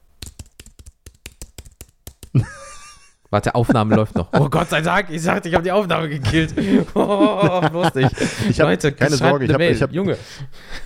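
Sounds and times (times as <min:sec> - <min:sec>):
typing on a computer keyboard: 0:00.2 - 0:02.4
speech: 0:02.3 - 0:02.6, 0:03.3 - 0:10.8
laughter: 0:02.4 - 0:10.2.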